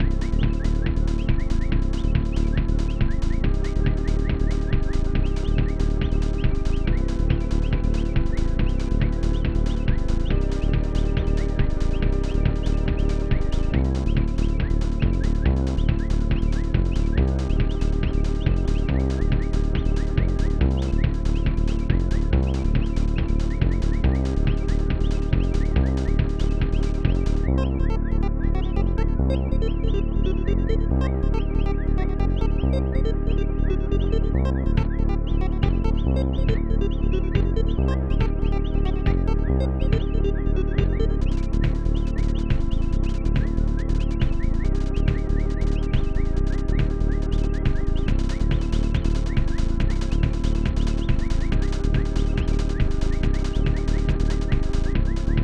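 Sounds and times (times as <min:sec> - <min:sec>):
tense forest ambient music: 0:00.0 - 0:55.4.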